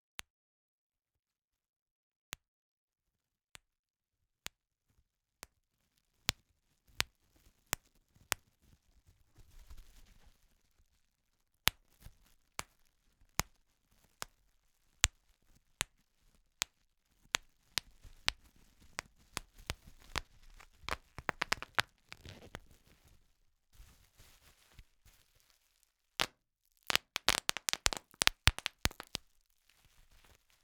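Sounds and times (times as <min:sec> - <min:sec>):
bubble wrap popping: 0:06.3 - 0:30.6.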